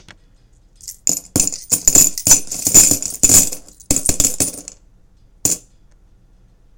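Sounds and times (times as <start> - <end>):
coins falling onto coins: 0.8 - 4.8, 5.4 - 5.7.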